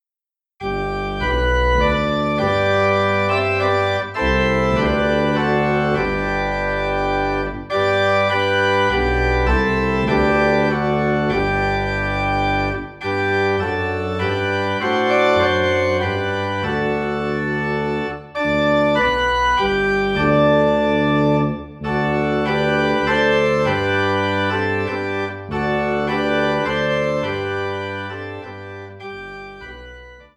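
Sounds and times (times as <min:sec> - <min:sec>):
organ in G: 0:00.6 - 0:30.3.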